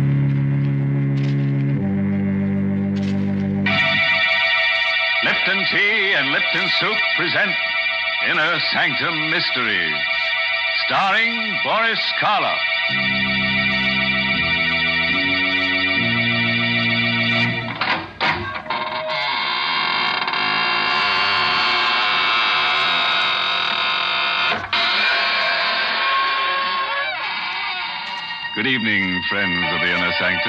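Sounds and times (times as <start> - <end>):
organ chords: 0.0 - 30.4
speech: 5.7 - 7.6, 8.2 - 13.3, 28.7 - 30.4
squeaking door: 17.8 - 28.6.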